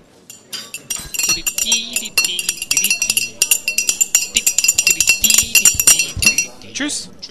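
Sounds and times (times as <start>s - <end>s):
spoons clinking rhythmically against mugs: 0.0s - 7.2s
speech: 1.7s - 2.8s, 6.8s - 7.2s.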